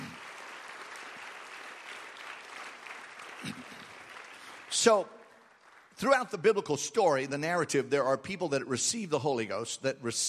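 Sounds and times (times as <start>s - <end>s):
audience clapping hands in praise: 0.0s - 7.0s
speech: 4.8s - 5.2s, 6.0s - 10.2s.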